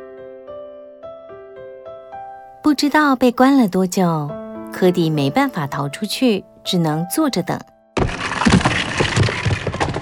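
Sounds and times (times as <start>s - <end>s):
speech: 2.7s - 7.7s
gritty rubble rattling: 8.0s - 9.9s
stone being dug and broken apart: 8.0s - 9.9s.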